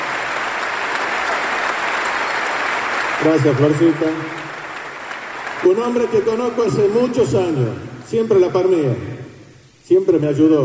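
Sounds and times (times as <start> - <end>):
audience applause: 0.0 - 7.6
speech: 3.2 - 4.4, 5.6 - 9.1, 9.9 - 10.6.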